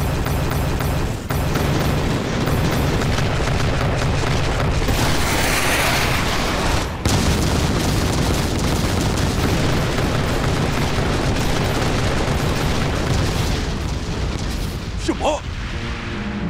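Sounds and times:
mecha units gunfire and explosions against a dragon-like monster: 0.0 - 16.4.

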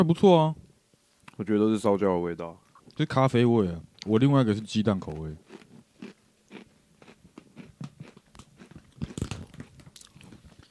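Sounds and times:
speech: 0.0 - 0.6, 1.4 - 5.6
crunchy biscuit being bitten and chewed: 5.4 - 10.6.

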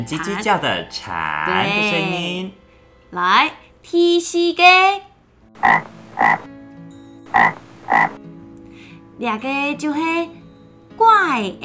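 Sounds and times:
speech: 0.0 - 6.5, 7.3 - 8.2, 9.2 - 10.4, 11.0 - 11.6
frog croaking: 5.6 - 6.5, 7.3 - 8.2.

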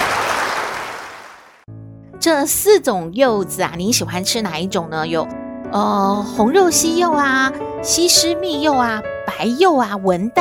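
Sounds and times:
applause: 0.0 - 1.6
speech: 2.2 - 10.3.

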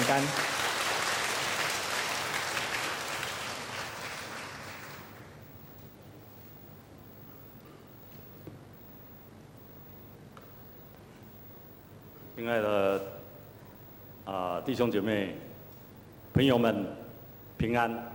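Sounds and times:
audience applause: 0.0 - 5.4
speech: 0.1 - 0.5, 12.4 - 13.1, 14.3 - 15.4, 16.4 - 16.9, 17.6 - 18.1.

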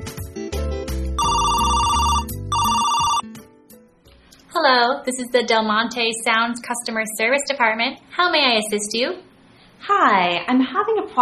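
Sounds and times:
telephone ringing: 1.2 - 3.2
speech: 4.6 - 11.2.

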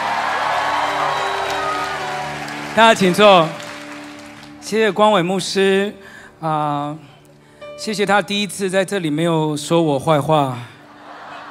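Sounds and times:
audience cheering: 0.0 - 5.2
speech: 2.8 - 3.6, 4.7 - 7.1, 7.8 - 10.7
laughter: 10.8 - 11.5.

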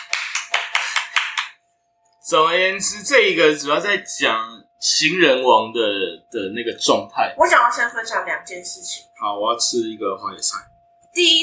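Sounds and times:
applause: 0.0 - 1.6
speech: 2.3 - 11.4.

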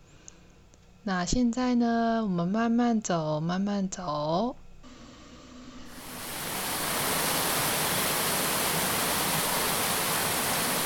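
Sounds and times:
speech: 1.0 - 4.6
small mountain stream flowing at Maopukeng Creek: 6.0 - 10.8.

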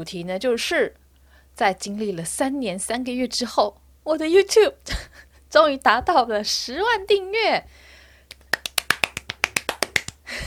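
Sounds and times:
speech: 0.0 - 1.0, 1.6 - 7.8
hand claps: 8.3 - 10.2.

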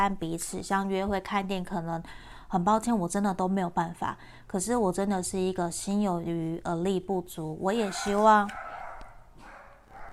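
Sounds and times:
speech: 0.0 - 8.7
small dog barking: 7.8 - 10.1.

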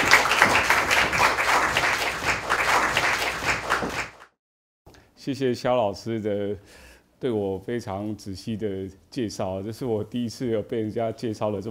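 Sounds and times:
applause: 0.0 - 4.4
speech: 5.2 - 11.6.

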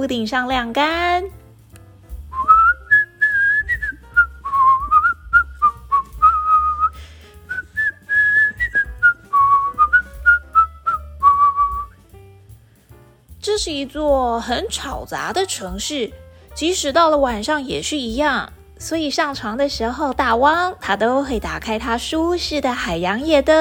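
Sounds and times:
speech: 0.0 - 1.4, 13.6 - 23.6
low rumble: 0.0 - 23.6
person whistling a tune: 2.3 - 12.0.

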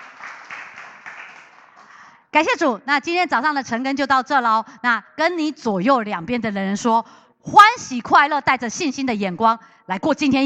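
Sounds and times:
group applauding: 0.0 - 2.0
speech: 2.3 - 10.4.

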